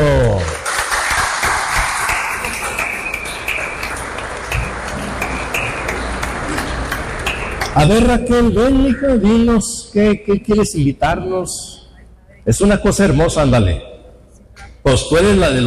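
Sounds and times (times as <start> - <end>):
audience applause: 0.0 - 7.8
speech: 7.8 - 11.8, 12.4 - 13.9, 14.8 - 15.6.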